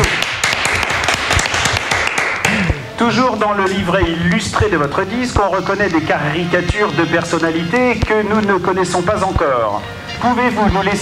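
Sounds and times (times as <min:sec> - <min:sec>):
applause: 0:00.0 - 0:02.7
speech: 0:03.0 - 0:10.9.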